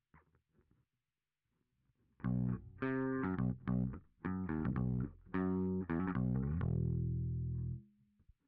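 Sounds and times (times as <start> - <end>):
bass guitar through SansAmp: 2.2 - 7.9.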